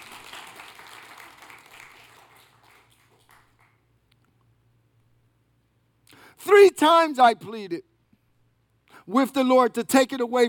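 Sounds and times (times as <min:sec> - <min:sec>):
audience applause: 0:00.0 - 0:03.8
speech: 0:06.4 - 0:07.9, 0:09.1 - 0:10.4.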